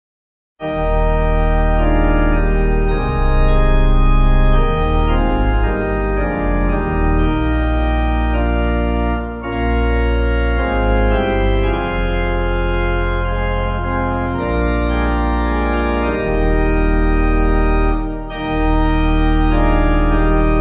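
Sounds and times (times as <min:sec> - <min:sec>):
pipe organ: 0:00.6 - 0:20.5.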